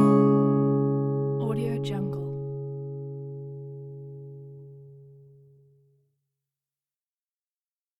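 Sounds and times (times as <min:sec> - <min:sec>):
guitar strumming chords: 0:00.0 - 0:05.7.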